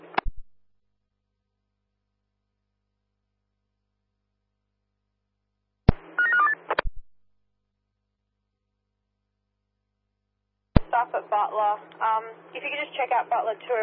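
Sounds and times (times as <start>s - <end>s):
telephone touch-tone dialing beeps: 6.2s - 6.6s
speech: 11.0s - 13.8s.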